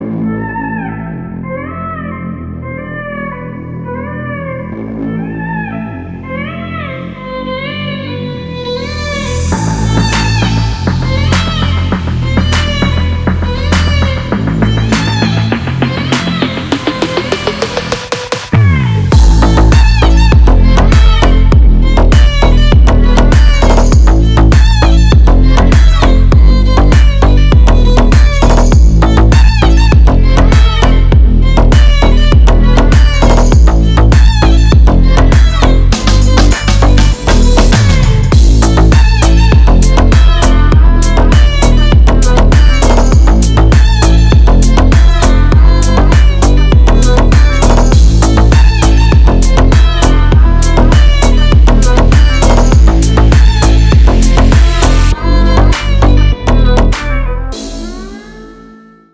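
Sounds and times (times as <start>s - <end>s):
magic violin: 0.0s - 59.1s.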